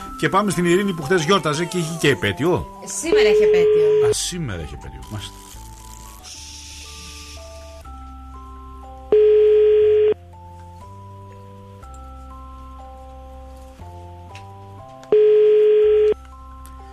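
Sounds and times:
soft music: 0:00.0 - 0:16.9
speech: 0:00.2 - 0:05.5
telephone ringback tone, call unanswered: 0:03.1 - 0:04.2, 0:09.1 - 0:10.2, 0:15.1 - 0:16.2.

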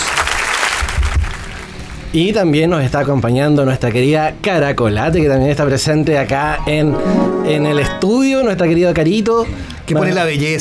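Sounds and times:
applause in the studio: 0:00.0 - 0:02.0
speech: 0:02.1 - 0:10.5.

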